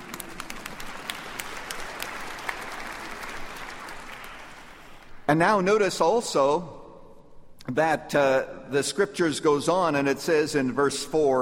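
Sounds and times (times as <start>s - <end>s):
audience clapping: 0.0s - 5.3s
speech: 5.3s - 6.8s, 7.7s - 11.3s.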